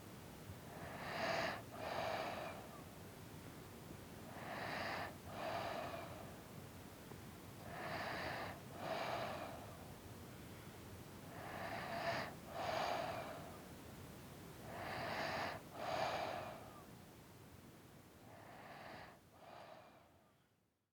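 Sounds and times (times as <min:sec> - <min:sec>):
breathing: 0:00.7 - 0:02.8, 0:04.3 - 0:06.5, 0:07.6 - 0:13.7, 0:14.6 - 0:16.9, 0:18.2 - 0:20.5.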